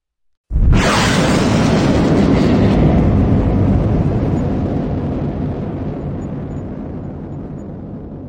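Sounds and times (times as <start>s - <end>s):
spaceship blasting off: 0.5s - 6.9s.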